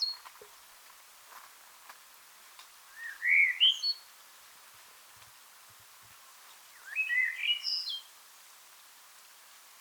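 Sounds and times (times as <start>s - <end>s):
Common blackbird song: 0.0s - 0.3s, 2.9s - 4.1s, 6.5s - 8.2s
faint soft ticks: 0.2s - 2.8s, 5.2s - 5.4s.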